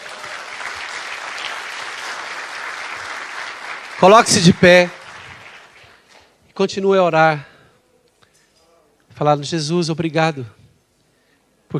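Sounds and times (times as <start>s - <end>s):
audience applauding: 0.0s - 6.2s
speech: 4.0s - 5.0s, 6.6s - 7.5s, 9.2s - 10.6s.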